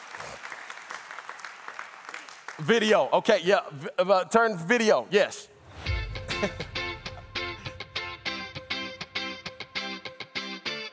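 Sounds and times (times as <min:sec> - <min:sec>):
audience clapping hands in praise: 0:00.0 - 0:03.4
speech: 0:02.6 - 0:05.5, 0:06.4 - 0:06.7.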